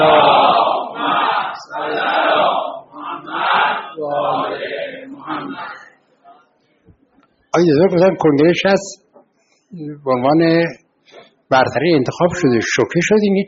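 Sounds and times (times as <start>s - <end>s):
crowd chanting a salawat in unison: 0.0s - 5.9s
speech: 7.6s - 9.0s, 9.7s - 13.4s.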